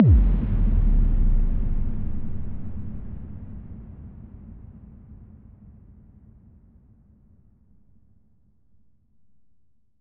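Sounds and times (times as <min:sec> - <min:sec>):
big boom: 0:00.0 - 0:04.0.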